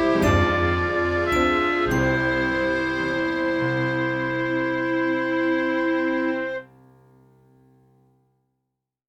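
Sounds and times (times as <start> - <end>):
waltz music: 0.0 - 6.7.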